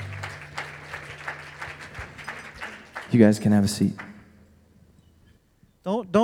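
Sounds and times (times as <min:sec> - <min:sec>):
low sustained hum: 0:00.0 - 0:01.9
congregation clapping in church: 0:00.0 - 0:04.5
speech: 0:03.1 - 0:04.1.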